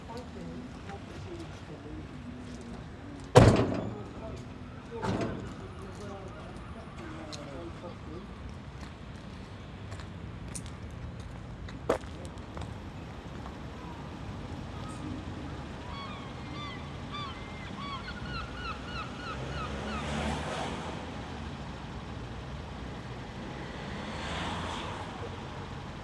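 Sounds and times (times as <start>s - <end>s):
street ambience on a walk: 0.0s - 26.0s.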